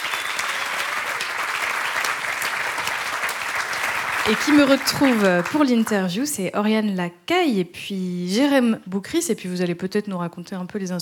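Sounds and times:
audience applause: 0.0 - 6.0
speech: 4.2 - 11.0.

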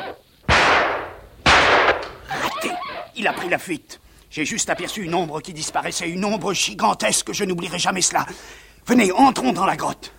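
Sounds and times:
gunshot: 0.5 - 2.3
speech: 3.2 - 10.1.

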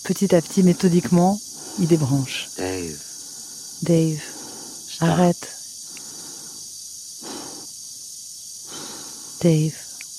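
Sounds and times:
speech: 0.0 - 3.1, 3.8 - 4.3, 5.0 - 5.6, 9.4 - 9.9
faint hum: 0.0 - 10.1
man breathing calmly in a film scene: 1.4 - 2.0, 2.6 - 5.0, 5.8 - 7.8, 8.6 - 9.4.

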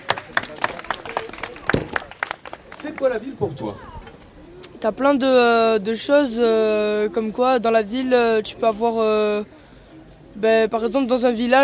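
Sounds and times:
audience applause: 0.0 - 3.8
speech: 2.8 - 3.9, 4.8 - 9.6, 10.4 - 11.6.

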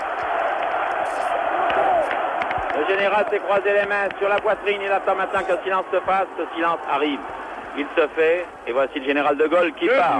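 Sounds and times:
crowd cheering and chanting de Gaulle: 0.0 - 10.1
speech: 2.8 - 10.1.

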